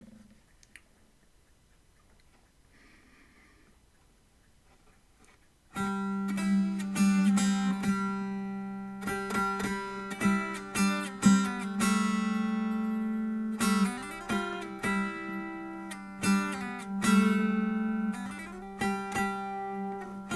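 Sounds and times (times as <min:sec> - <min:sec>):
Appalachian dulcimer melody: 0:05.8 - 0:20.3.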